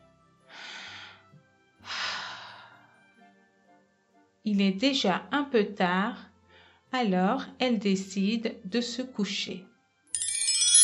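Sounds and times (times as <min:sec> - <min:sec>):
woman breathing deeply by an open bedroom window: 0:00.5 - 0:02.9
speech: 0:04.5 - 0:06.3, 0:06.9 - 0:09.7.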